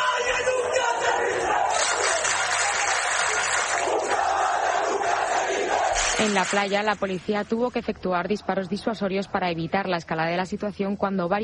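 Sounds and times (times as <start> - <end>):
protest crowd chanting slogan on Trampolín beach: 0.0 - 7.1
speech: 6.2 - 11.4.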